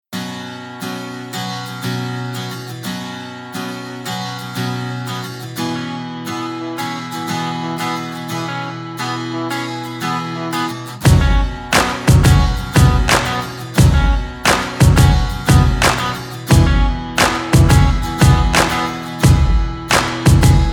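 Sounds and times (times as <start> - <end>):
instrumental tone: 8.3 - 20.7.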